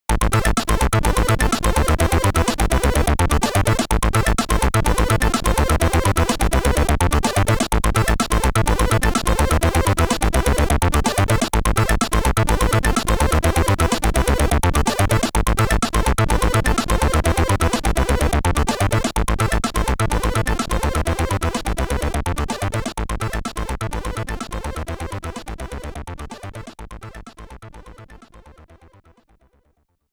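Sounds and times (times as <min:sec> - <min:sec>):
stereo SID chiptune music: 0:00.1 - 0:29.1.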